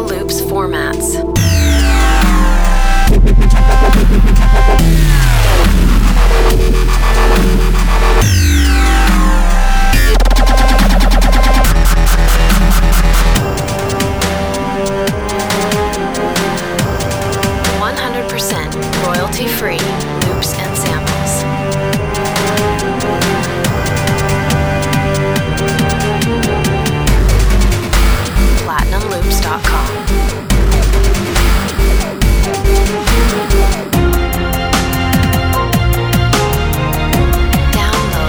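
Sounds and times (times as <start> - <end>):
voice: 0.0 - 1.4, 17.7 - 21.5, 28.4 - 30.4, 37.6 - 38.2
cinematic dubstep: 0.0 - 38.2.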